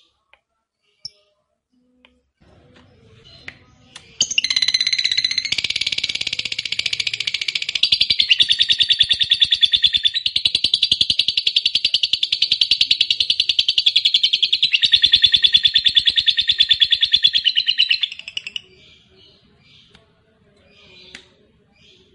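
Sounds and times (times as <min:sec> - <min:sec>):
lovebird trilling chatter: 0:04.2 - 0:18.6.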